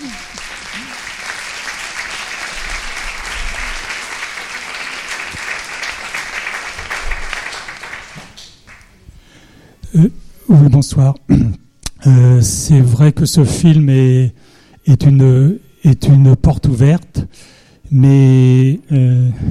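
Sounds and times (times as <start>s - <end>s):
audience applause: 0.0s - 9.0s
speech: 10.0s - 19.4s.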